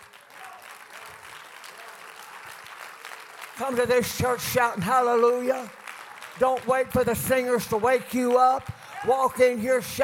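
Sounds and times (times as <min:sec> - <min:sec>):
people clapping hands: 0:00.0 - 0:10.0
speech: 0:03.6 - 0:05.8, 0:06.4 - 0:10.0.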